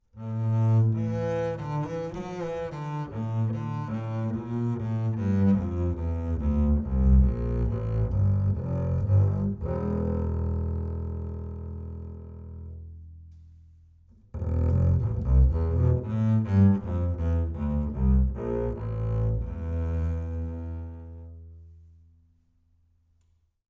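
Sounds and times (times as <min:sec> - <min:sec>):
low bowed acoustic bass: 0:00.2 - 0:13.6, 0:14.3 - 0:21.9.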